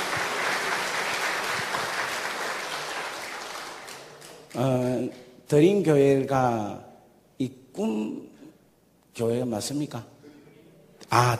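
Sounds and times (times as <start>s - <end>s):
audience applauding: 0.0s - 4.8s
speech: 4.6s - 8.3s, 9.2s - 10.1s, 11.1s - 11.3s.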